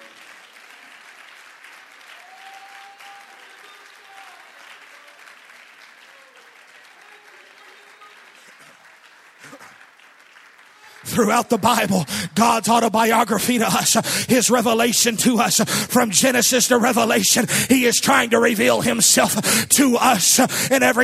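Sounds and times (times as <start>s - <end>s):
hand clap of praise: 0.0s - 12.2s
speech: 11.1s - 21.0s.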